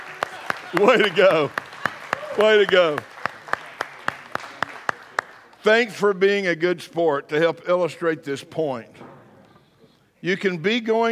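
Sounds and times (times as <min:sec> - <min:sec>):
hand clapping: 0:00.0 - 0:05.6
speech: 0:00.7 - 0:01.6, 0:02.4 - 0:03.1, 0:05.6 - 0:09.1, 0:10.2 - 0:11.0.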